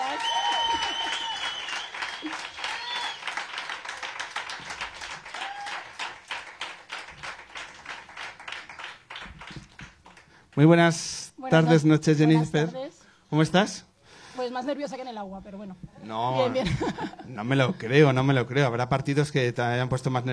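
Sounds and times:
audience applause welcoming a guest: 0.0s - 10.3s
speech: 10.6s - 13.9s, 14.5s - 20.3s
laughter: 16.4s - 17.4s.

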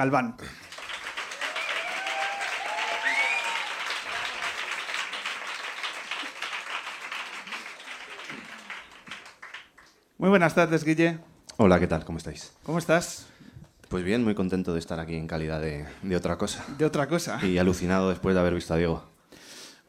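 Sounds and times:
speech: 0.0s - 0.7s, 10.2s - 19.4s
applause: 0.5s - 10.0s.

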